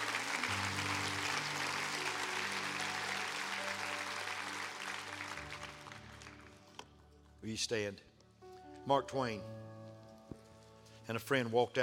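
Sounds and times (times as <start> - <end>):
audience clapping hands: 0.0 - 6.9
speech: 7.4 - 8.1, 8.8 - 9.7, 11.1 - 11.8.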